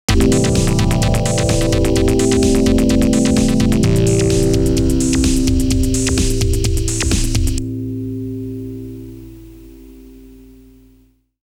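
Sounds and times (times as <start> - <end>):
game start sound: 0.1 - 9.1.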